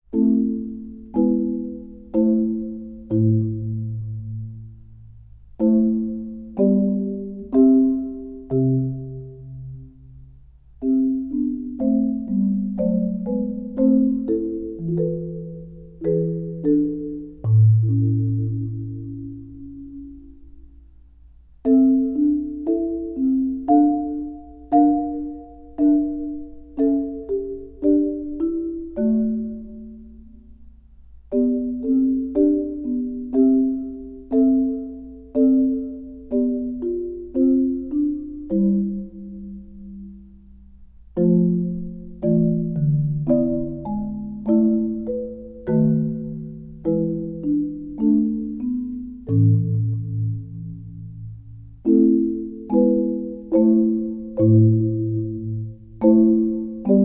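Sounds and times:
chorale: 0.0 - 57.0.

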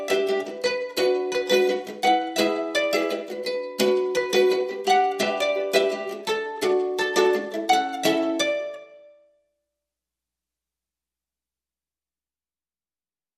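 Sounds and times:
mandolin: 0.0 - 9.3
ukulele: 0.0 - 9.4.

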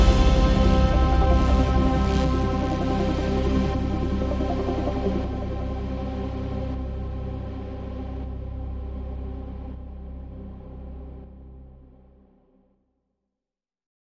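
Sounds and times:
chords: 0.0 - 7.7.

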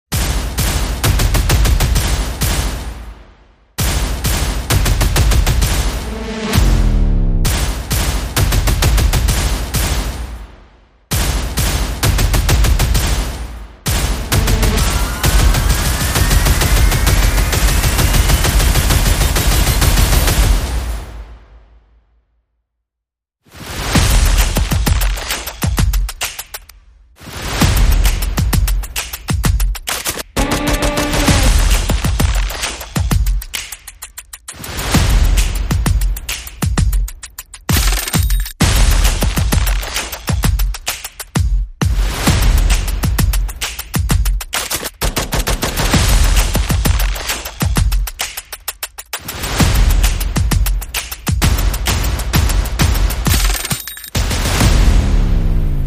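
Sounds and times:
percussion: 0.1 - 21.5, 23.6 - 55.4
sound effects: 5.8 - 7.8, 13.9 - 19.0, 30.4 - 32.6.

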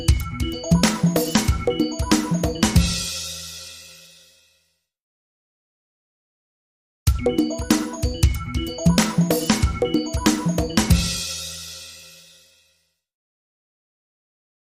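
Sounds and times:
jazz tech music: 0.0 - 3.5, 7.1 - 12.0.

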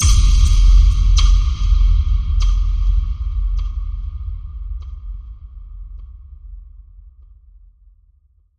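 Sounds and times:
forest boom: 0.0 - 5.6.

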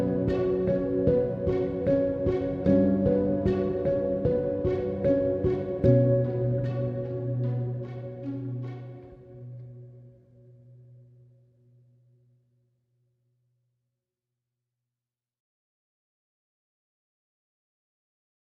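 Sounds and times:
arpeggios: 0.0 - 10.2.

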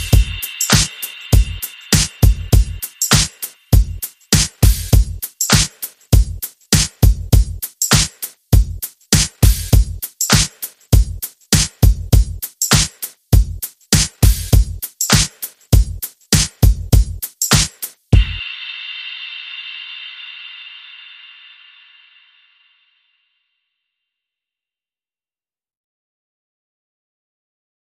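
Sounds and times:
sensual beat: 0.0 - 22.3.

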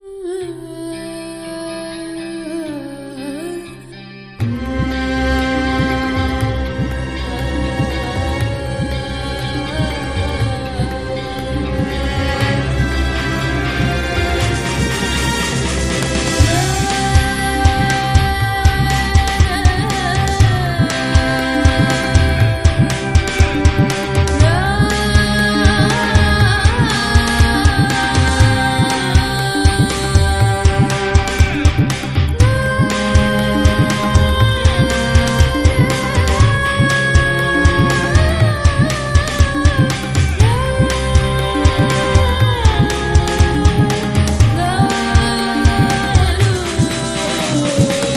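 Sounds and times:
epic ethnic rock music: 3.2 - 48.1.

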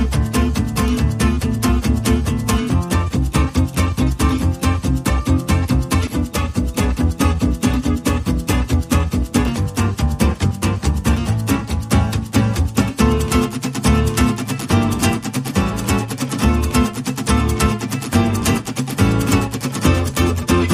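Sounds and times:
jazz club music: 0.0 - 20.7.

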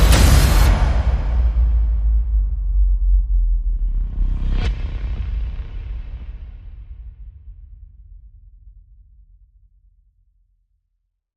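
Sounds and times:
trailer percussion: 0.0 - 8.8.

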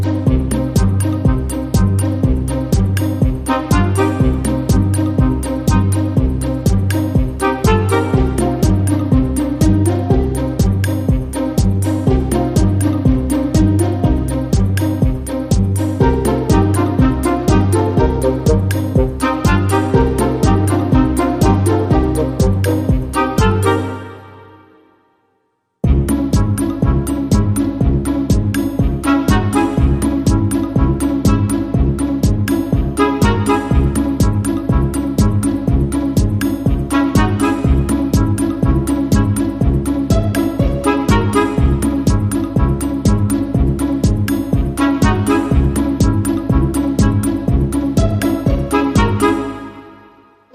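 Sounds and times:
modern percussion: 0.2 - 23.8, 25.8 - 49.5.

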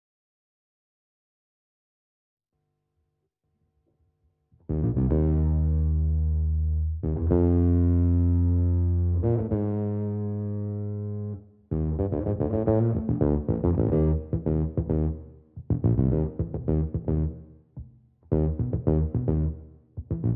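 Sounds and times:
bass: 4.6 - 20.3.

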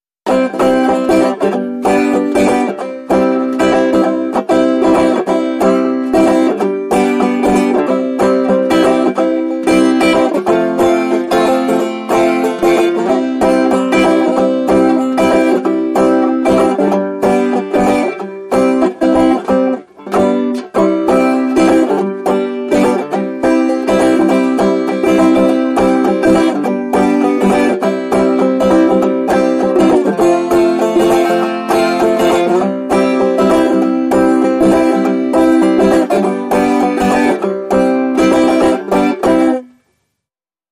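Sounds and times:
solo banjo playing a happy tune: 0.2 - 40.0.

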